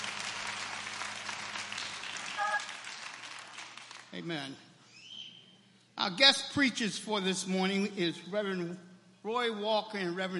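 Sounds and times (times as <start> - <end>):
audience clapping hands: 0.0 - 4.3
speech: 4.1 - 4.7, 6.0 - 10.3.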